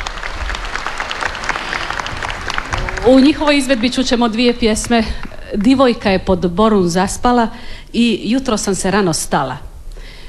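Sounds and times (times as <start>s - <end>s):
concert audience applauding a women's klapa choir from Zadar: 0.0s - 5.9s
speech: 3.1s - 9.7s.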